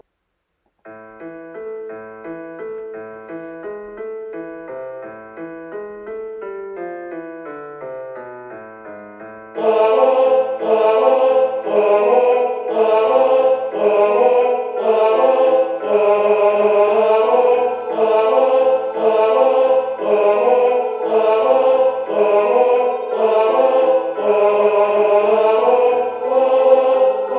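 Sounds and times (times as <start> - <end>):
tenor singing: 9.6 - 27.3.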